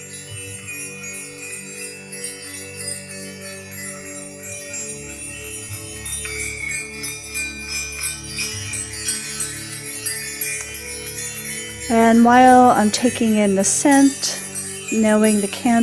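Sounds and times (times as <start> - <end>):
small fairy bells ringing: 0.0 - 15.8
speech: 11.9 - 15.8.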